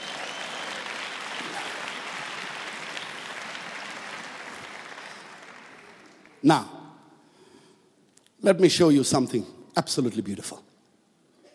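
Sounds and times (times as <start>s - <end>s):
audience applause: 0.0s - 6.4s
speech: 6.4s - 6.8s, 8.4s - 10.7s.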